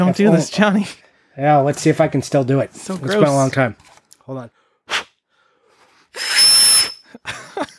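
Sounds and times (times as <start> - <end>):
speech: 0.0 - 5.0
air blown into a game cartridge: 6.1 - 7.1
thin high whistle: 6.1 - 7.2
laughter: 7.2 - 7.7.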